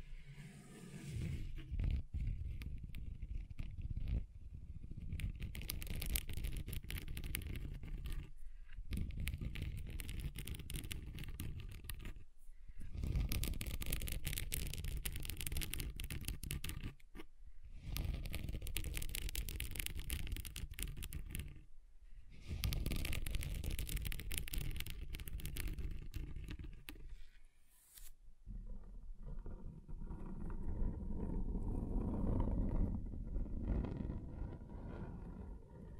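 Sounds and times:
scratching across a table surface: 0.4 - 21.7, 22.4 - 28.2, 29.2 - 35.9.

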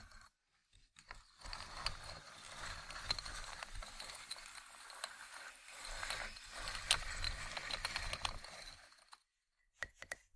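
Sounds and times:
wooden ASMR triggers rattling and clicking scrapes: 1.1 - 9.3.

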